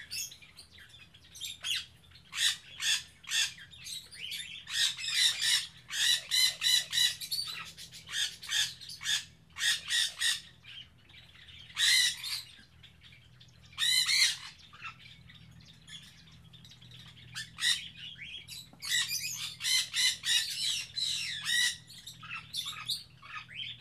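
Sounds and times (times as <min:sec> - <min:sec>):
birds chirping in an aviary on Spetses: 0:00.0 - 0:23.7.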